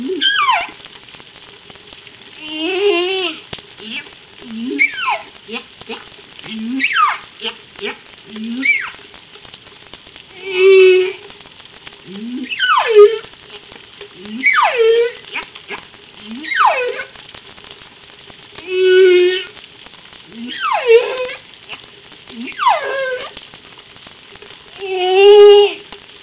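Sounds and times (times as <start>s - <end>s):
humpback whale song off La Réunion: 0.0s - 0.9s, 2.4s - 9.0s, 10.3s - 11.3s, 12.1s - 13.3s, 14.2s - 17.2s, 18.6s - 19.6s, 20.3s - 23.4s.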